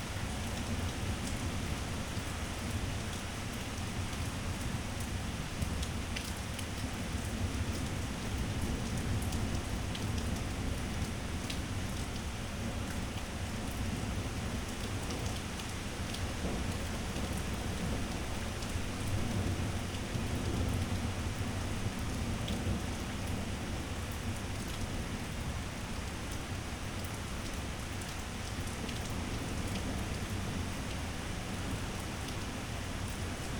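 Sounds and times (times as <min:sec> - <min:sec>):
heavy to medium rain ambience: 0:00.0 - 0:33.5.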